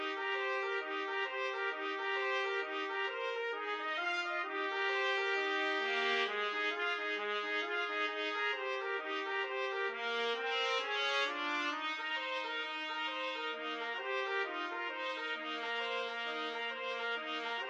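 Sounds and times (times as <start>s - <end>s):
boogie trumpet duet: 0.0s - 17.6s.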